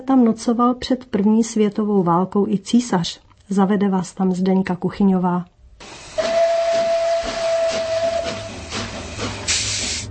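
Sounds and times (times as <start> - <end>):
speech: 0.0 - 6.0
passenger train hooting its whistle: 6.1 - 10.0.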